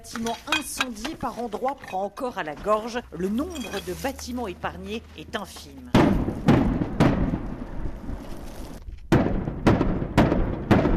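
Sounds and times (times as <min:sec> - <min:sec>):
speech: 0:00.0 - 0:06.0
continuous low rumble: 0:05.9 - 0:10.2
distant combat explosions: 0:05.9 - 0:10.9.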